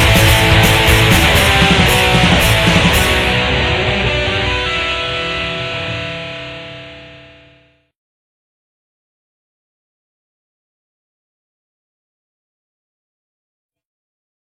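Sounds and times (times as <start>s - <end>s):
music: 0.0s - 7.9s.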